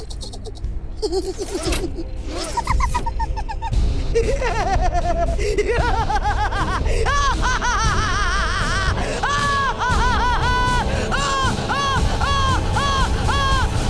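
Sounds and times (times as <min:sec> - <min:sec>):
person laughing: 0:00.0 - 0:13.8.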